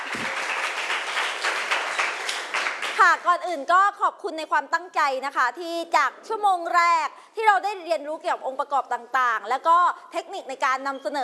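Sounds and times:
classroom applause: 0:00.0 - 0:03.3
speech: 0:03.0 - 0:11.2.

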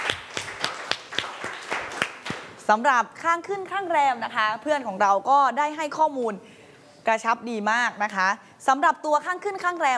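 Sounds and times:
group clapping in rhythm: 0:00.0 - 0:02.6
speech: 0:02.7 - 0:06.5, 0:07.1 - 0:09.9.

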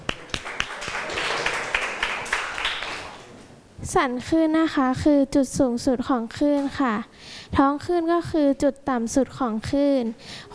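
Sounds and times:
classroom applause for a student group: 0:00.0 - 0:03.3
speech: 0:03.9 - 0:10.5.

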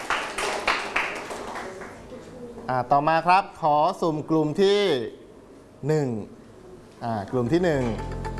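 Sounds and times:
classroom of students giving scattered handclaps: 0:00.0 - 0:02.1
speech: 0:02.7 - 0:05.2, 0:05.8 - 0:06.4, 0:07.0 - 0:08.2.

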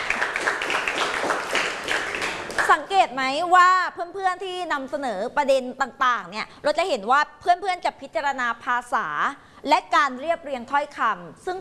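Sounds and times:
students applauding a classmate in a classroom after a presentation: 0:00.0 - 0:03.0
speech: 0:03.0 - 0:11.5.

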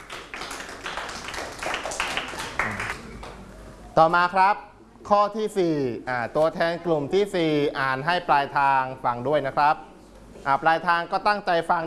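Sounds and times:
classroom clapping for a correct answer: 0:00.0 - 0:03.5
speech: 0:04.0 - 0:11.8.

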